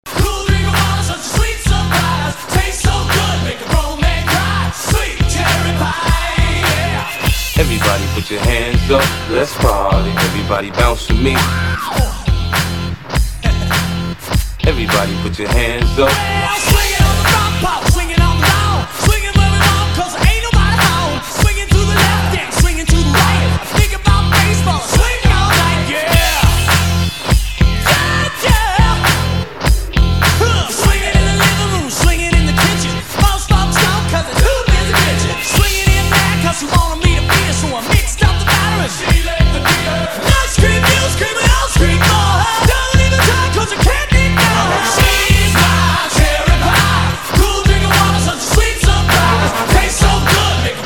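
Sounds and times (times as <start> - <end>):
party classic hip hop rock mashup: 0.0 - 50.8.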